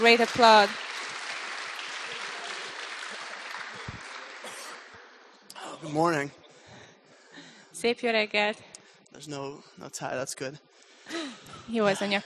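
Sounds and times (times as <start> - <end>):
speech: 0.0 - 0.9, 5.8 - 6.4, 7.8 - 12.2
audience applause at a church service: 0.0 - 5.3.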